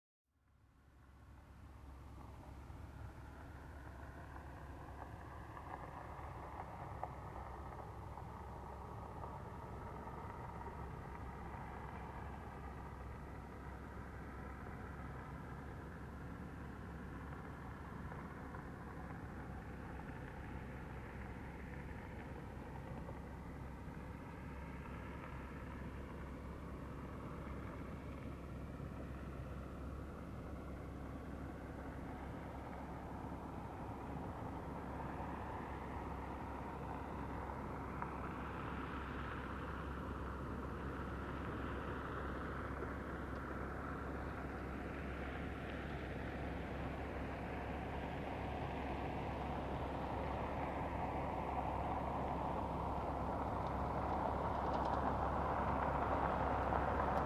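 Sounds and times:
car approaching and parking: 0.4s - 57.2s.

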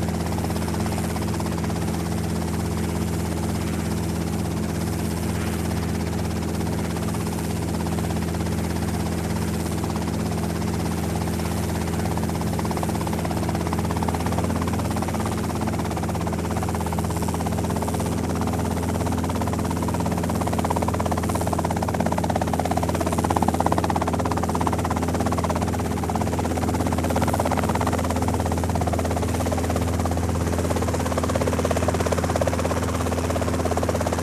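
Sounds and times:
helicopter taking off: 0.0s - 34.2s
helicopter engine starting: 20.3s - 34.2s.

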